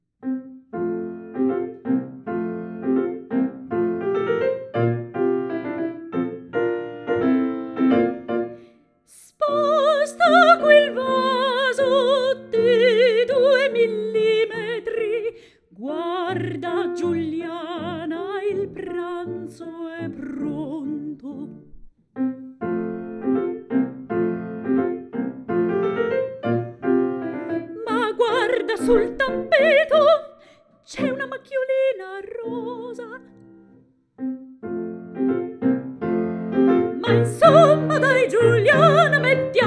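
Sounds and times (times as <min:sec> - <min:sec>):
piano: 0:00.1 - 0:39.6
person singing satirical songs: 0:09.1 - 0:21.6, 0:27.8 - 0:33.3, 0:37.0 - 0:39.6.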